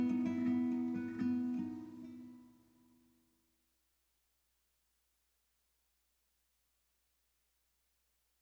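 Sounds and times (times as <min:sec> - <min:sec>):
guitar: 0:00.0 - 0:03.4.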